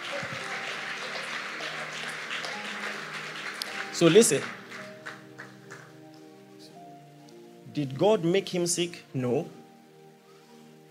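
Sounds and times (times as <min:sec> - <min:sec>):
crowd applause: 0:00.0 - 0:06.0
speech: 0:04.0 - 0:04.6, 0:07.8 - 0:09.6.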